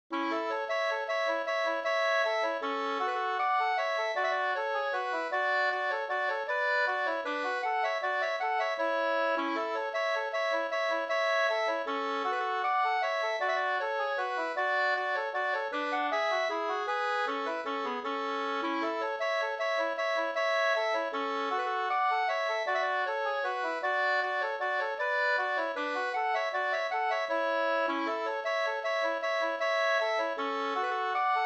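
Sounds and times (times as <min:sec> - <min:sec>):
bridal waltz music: 0:00.2 - 0:31.4.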